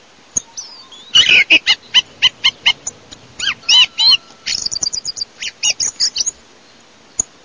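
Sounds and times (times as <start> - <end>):
thrush singing: 0.7 - 5.8.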